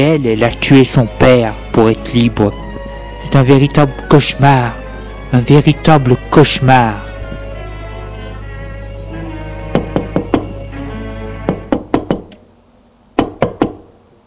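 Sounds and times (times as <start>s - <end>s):
speech: 0.0s - 2.6s, 3.3s - 7.1s
knocking on a door: 9.7s - 10.6s, 11.5s - 12.3s, 13.2s - 13.8s.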